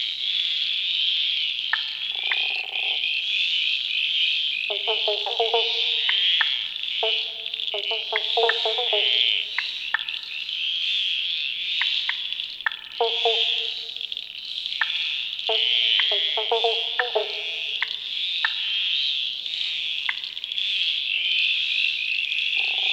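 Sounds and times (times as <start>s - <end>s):
pobblebonk frogs: 0.2s - 22.9s.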